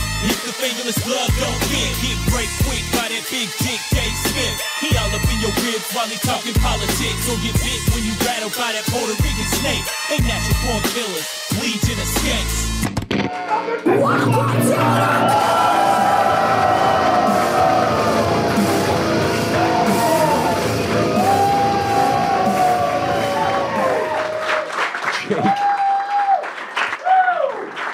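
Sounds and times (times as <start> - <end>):
speech: 0.2 - 15.8
crowd worked up into a frenzy: 13.2 - 27.9.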